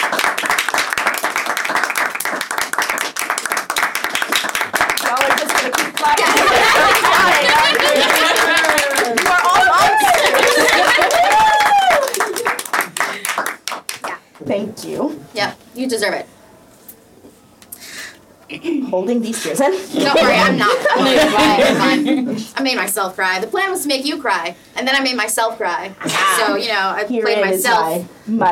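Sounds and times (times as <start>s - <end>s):
crowd applause: 0.0s - 14.2s
laughter: 6.0s - 13.3s, 20.0s - 22.5s
voices whooping and cheering: 6.1s - 12.6s
speech: 15.9s - 16.3s, 18.9s - 28.5s.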